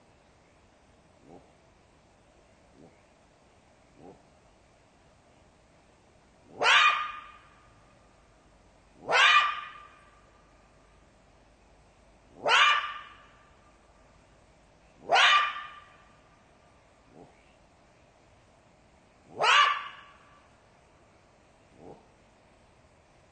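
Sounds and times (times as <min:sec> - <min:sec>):
jackal yelping: 0:06.5 - 0:07.6, 0:09.0 - 0:10.2, 0:12.3 - 0:13.5, 0:15.0 - 0:16.2, 0:19.3 - 0:20.4.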